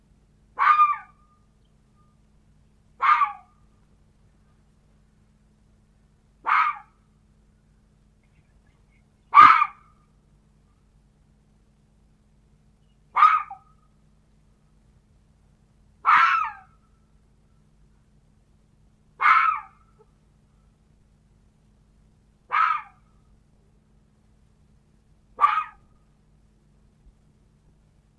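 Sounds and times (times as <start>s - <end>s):
red fox barking: 0.6s - 1.2s, 3.0s - 3.5s, 6.4s - 7.0s, 9.3s - 9.9s, 13.1s - 13.8s, 16.0s - 16.7s, 19.2s - 20.1s, 22.5s - 23.1s, 25.4s - 25.9s.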